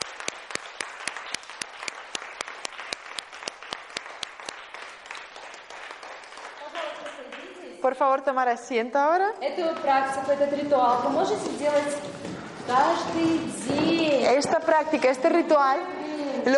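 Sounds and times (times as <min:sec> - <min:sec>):
audience applause: 0:00.0 - 0:07.5
speech: 0:07.8 - 0:16.5.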